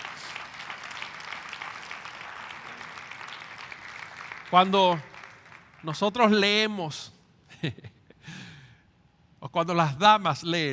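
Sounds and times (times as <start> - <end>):
audience applause: 0.0 - 6.0
speech: 4.5 - 5.1, 5.8 - 7.9, 9.5 - 10.7.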